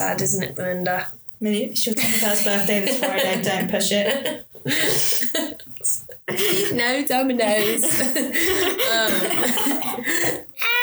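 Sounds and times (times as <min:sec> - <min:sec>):
speech: 0:00.0 - 0:10.7
laughter: 0:02.0 - 0:10.8
person coughing harshly, choking on air: 0:06.2 - 0:06.8, 0:07.5 - 0:10.8.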